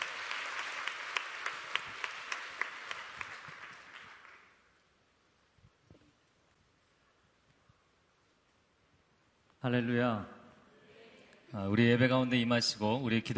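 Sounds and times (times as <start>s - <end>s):
audience applause: 0.0s - 4.6s
speech: 9.6s - 10.4s, 11.5s - 13.3s.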